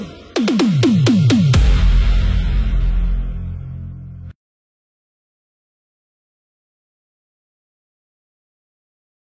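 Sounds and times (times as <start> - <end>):
deep house music with snap rhythm: 0.0 - 4.3.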